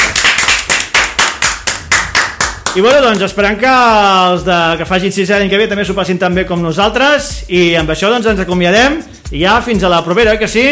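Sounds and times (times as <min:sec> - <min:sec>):
children clapping for cave guides on a school outing: 0:00.0 - 0:03.3
speech: 0:02.8 - 0:10.7.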